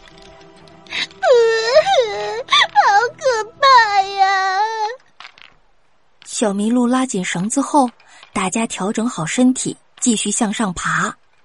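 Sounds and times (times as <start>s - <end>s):
character crying with a high wailing cry: 0.9s - 5.0s
speech: 6.4s - 11.2s.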